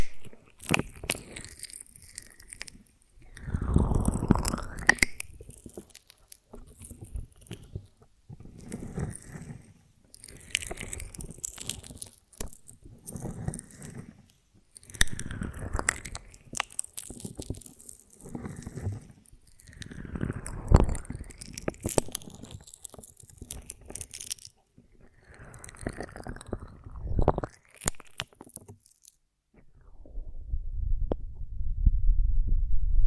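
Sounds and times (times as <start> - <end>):
honeycomb on a branch being bitten and chewed: 0.0 - 29.2
low dull rumble: 29.6 - 33.0.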